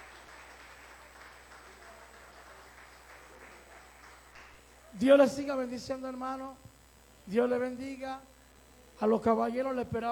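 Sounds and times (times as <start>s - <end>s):
audience applauding: 0.0s - 4.6s
speech: 5.0s - 6.7s, 7.3s - 8.3s, 9.0s - 10.1s.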